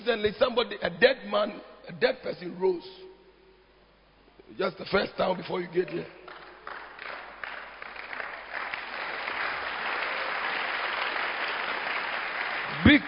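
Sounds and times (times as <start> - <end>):
speech: 0.1 - 3.1, 4.5 - 6.2, 12.8 - 13.0
audience clapping: 5.9 - 13.0.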